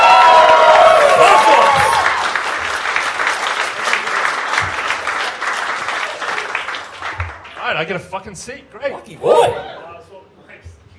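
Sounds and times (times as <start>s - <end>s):
audience applause at a live comedy quiz show: 0.0s - 8.0s
speech: 7.9s - 9.8s.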